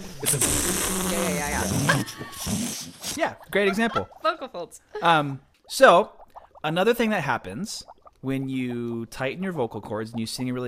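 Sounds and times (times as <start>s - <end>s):
voice imitating air escaping a balloon: 0.1s - 3.7s
speech: 0.2s - 10.6s.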